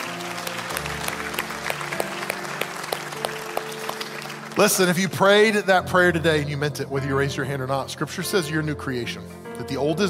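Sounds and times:
audience applause: 0.0 - 5.8
speech: 4.6 - 10.0.

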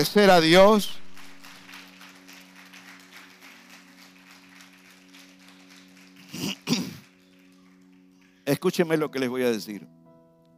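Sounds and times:
speech: 0.0 - 1.0, 8.5 - 10.0
audience applauding: 0.0 - 8.8.

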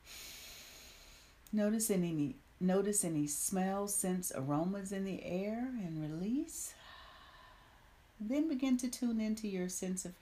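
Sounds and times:
deep breath drawn in: 0.0 - 1.4, 6.8 - 8.1
speech: 1.5 - 6.8, 8.2 - 10.2.

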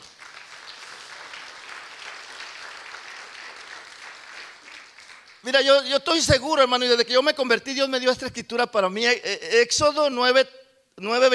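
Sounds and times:
audience applause: 0.0 - 5.5
speech: 5.4 - 11.3.

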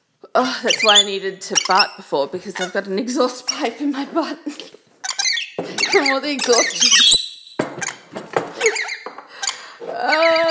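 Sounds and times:
speech: 0.4 - 4.8, 5.9 - 7.2
pet birds squabbling on a shoulder: 0.6 - 2.8, 5.0 - 10.4.

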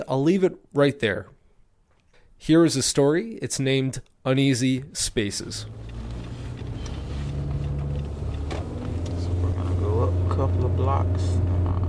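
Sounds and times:
speech: 0.0 - 1.4, 2.4 - 6.0, 10.4 - 11.6
soft road noise: 5.0 - 11.8
car engine driving through New Center neighborhood of Detroit: 5.4 - 11.8.

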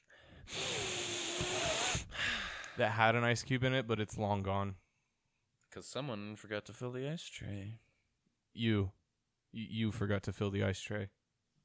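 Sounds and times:
person sniffing a glass of whiskey: 0.0 - 2.8
speech: 2.8 - 4.8, 5.8 - 7.8, 8.5 - 11.2.

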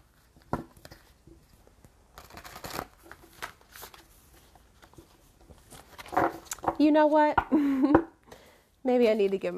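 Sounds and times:
deck of oracle cards being shuffled: 0.1 - 6.9
speech: 6.8 - 8.0, 8.9 - 9.5.

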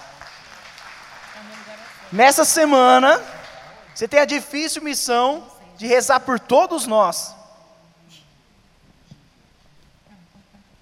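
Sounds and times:
applause: 0.0 - 2.5, 3.2 - 4.0
speech: 1.4 - 3.3, 4.0 - 7.4.

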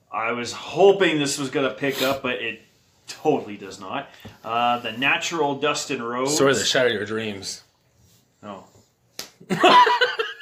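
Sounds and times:
speech: 0.2 - 7.6, 8.4 - 8.7, 9.4 - 10.0
hand smacking own head: 9.1 - 9.5.

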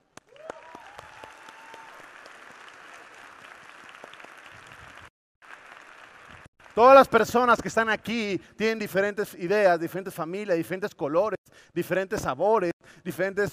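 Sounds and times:
audience applause: 0.0 - 7.0
cheers and whistles: 0.3 - 2.0
speech: 6.8 - 13.5.

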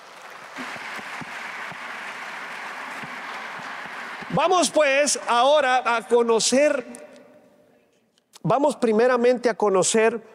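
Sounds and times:
crowd audience applause: 0.0 - 5.2
speech: 4.3 - 7.0, 8.5 - 10.3.

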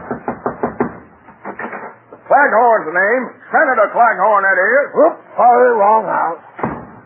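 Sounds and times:
knocking on a door: 0.0 - 1.1
speech: 2.4 - 6.6.

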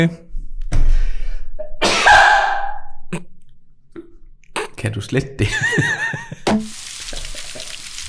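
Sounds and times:
speech: 0.0 - 0.2, 4.8 - 6.1
sneeze: 1.8 - 2.7
laughter: 5.4 - 6.5.

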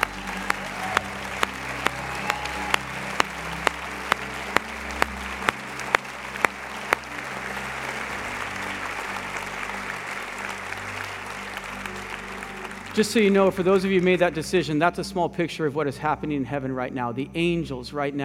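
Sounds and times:
audience applauding: 0.0 - 14.4
speech: 13.0 - 18.2.

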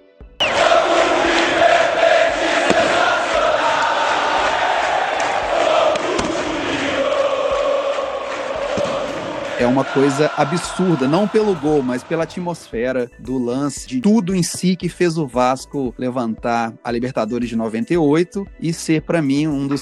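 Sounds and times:
football fans chanting a song: 0.4 - 12.7
speech: 9.6 - 19.7.

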